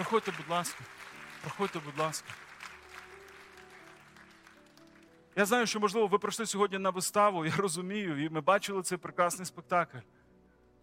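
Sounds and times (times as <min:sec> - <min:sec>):
speech: 0:00.0 - 0:02.5, 0:05.4 - 0:10.2
faint audience applause at a church service after a stage play: 0:00.0 - 0:06.4.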